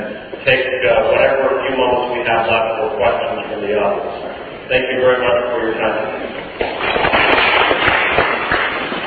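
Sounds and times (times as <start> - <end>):
speech: 0.1 - 1.1, 2.0 - 7.0
audience applause: 6.9 - 9.0.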